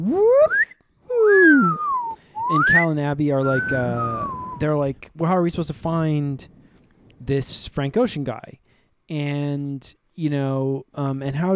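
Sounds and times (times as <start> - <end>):
speech: 0.0 - 0.8, 2.5 - 6.6, 7.2 - 11.5
voice imitating a slide whistle: 0.0 - 4.7.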